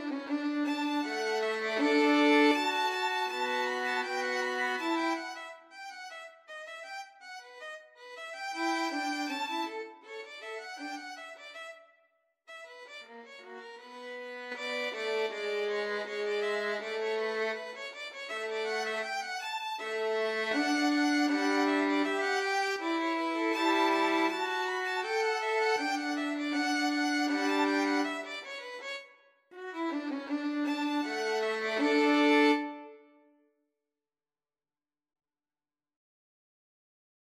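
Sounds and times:
violin trio playing: 0.0s - 6.2s, 8.4s - 11.4s, 13.2s - 28.9s, 29.6s - 33.0s.

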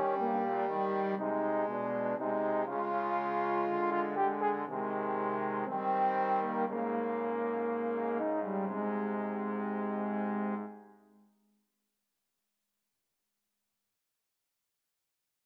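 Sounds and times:
trombone trio playing a romance: 0.0s - 10.8s.

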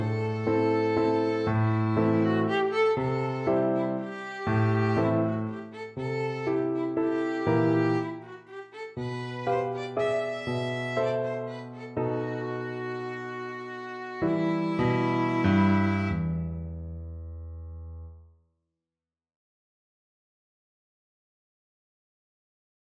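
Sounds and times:
violin waltz: 0.0s - 16.6s.

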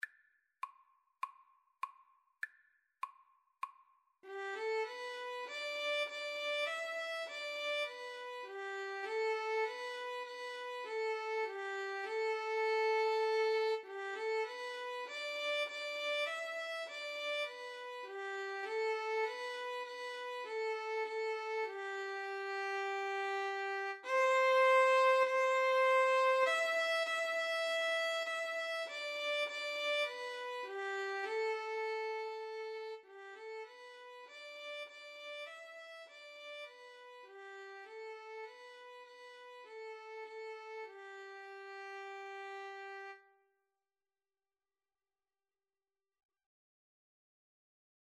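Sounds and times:
violin and cello duet: 4.3s - 43.2s.

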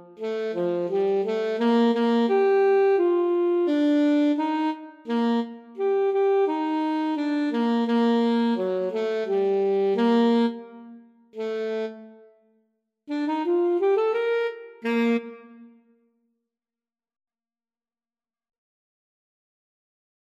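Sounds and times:
alto saxophone playing: 0.0s - 12.4s, 13.1s - 15.9s.

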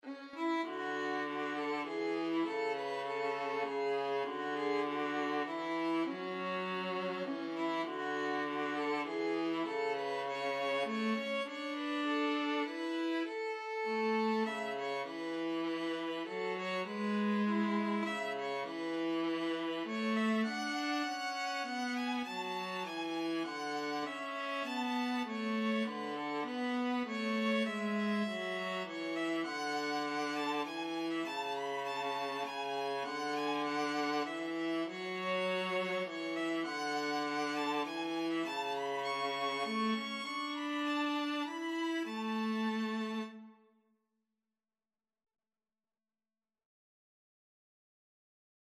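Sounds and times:
violin and viola duet: 0.0s - 43.6s.

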